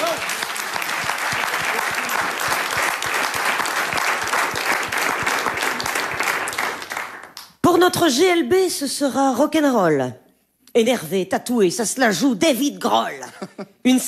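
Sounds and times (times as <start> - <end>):
applause: 0.0 - 7.6
speech: 7.8 - 10.2, 10.8 - 14.0.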